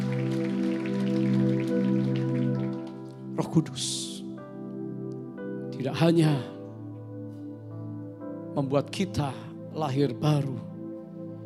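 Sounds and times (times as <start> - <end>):
audience applauding: 0.0 - 3.2
speech: 3.4 - 4.1, 5.8 - 6.6, 8.6 - 10.7.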